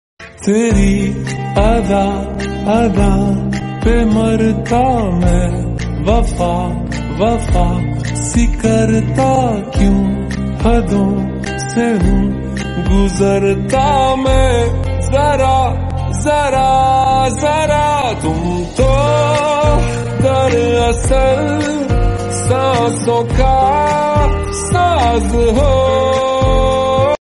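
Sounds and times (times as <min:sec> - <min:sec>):
lo-fi song ringtone: 0:00.2 - 0:27.2.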